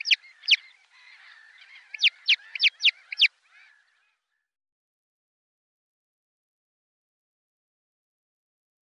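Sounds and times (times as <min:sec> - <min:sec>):
red-necked grebe calling: 0:00.0 - 0:04.2.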